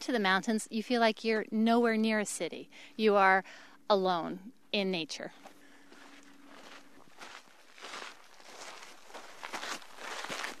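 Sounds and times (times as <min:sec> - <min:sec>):
speech: 0:00.0 - 0:05.5
footsteps walking along a mountain trail outside Phoenix: 0:05.4 - 0:10.5.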